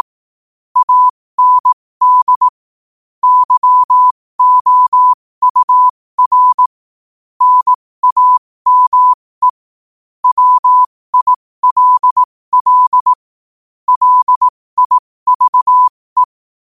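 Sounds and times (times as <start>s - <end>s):
morse code at 5 wpm: 0.8s - 2.6s, 3.2s - 6.8s, 7.4s - 9.6s, 10.2s - 13.2s, 13.9s - 16.4s.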